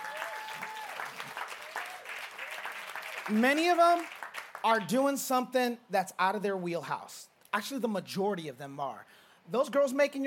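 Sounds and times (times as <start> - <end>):
audience clapping hands: 0.0 - 5.0
speech: 3.3 - 10.2.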